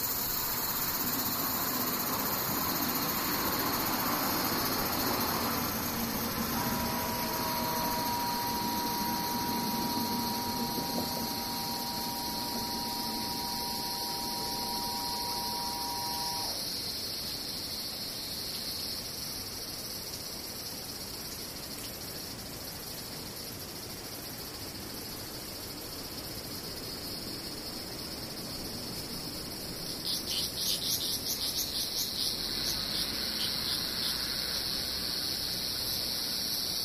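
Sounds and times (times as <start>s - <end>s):
louder raspier buzzing: 0.0s - 16.6s
cicadas droning: 0.0s - 36.8s
steady mid-pitched hum: 0.3s - 16.6s.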